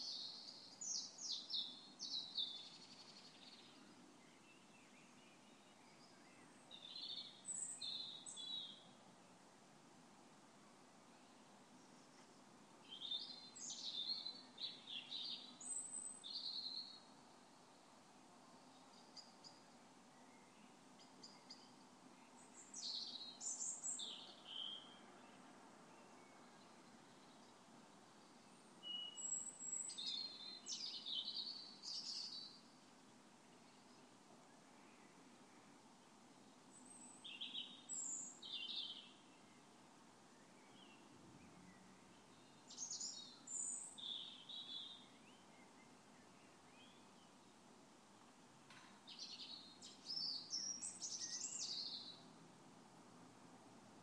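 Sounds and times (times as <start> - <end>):
equinox birdsong outside a window: 0.0 - 9.4, 11.1 - 47.7, 48.7 - 52.4.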